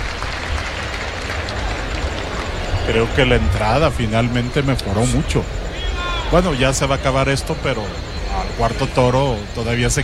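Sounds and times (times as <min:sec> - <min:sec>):
bullfight crowd ovation for the matador's muleta work in the bullring: 0:00.0 - 0:04.2
speech: 0:02.9 - 0:05.6, 0:06.3 - 0:10.0.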